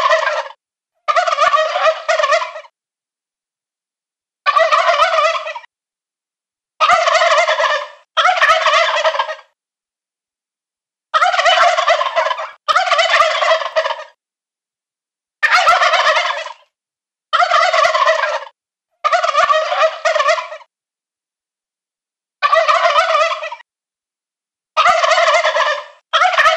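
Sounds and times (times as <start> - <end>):
male turkeys gobbling: 0.0 - 2.7, 4.5 - 5.7, 6.8 - 9.6, 11.2 - 14.2, 15.4 - 16.7, 17.3 - 20.7, 22.4 - 23.6, 24.8 - 26.5.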